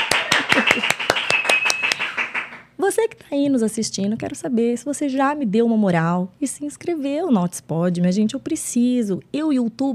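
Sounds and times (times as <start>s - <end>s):
applause: 0.0s - 2.7s
speech: 2.8s - 9.9s.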